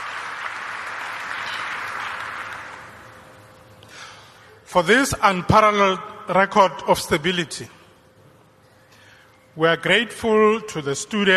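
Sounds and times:
audience applause: 0.0 - 3.3
speech: 4.7 - 7.8, 9.6 - 11.3.

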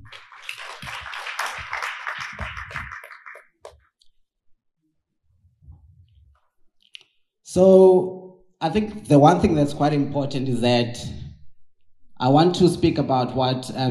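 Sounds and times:
audience applause: 0.0 - 3.7
speech: 7.6 - 11.2, 12.2 - 13.8.

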